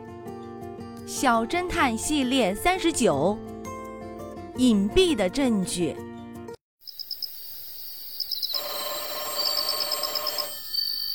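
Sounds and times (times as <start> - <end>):
speech: 1.1 - 3.5, 4.6 - 6.1
telephone ringing with rapid high-pitched electronic trilling: 8.4 - 11.1.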